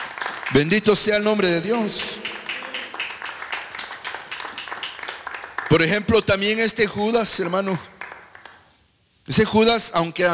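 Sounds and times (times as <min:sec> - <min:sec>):
audience clapping: 0:00.0 - 0:06.4, 0:07.4 - 0:08.7
speech: 0:00.5 - 0:02.3, 0:05.7 - 0:07.9, 0:09.3 - 0:10.3.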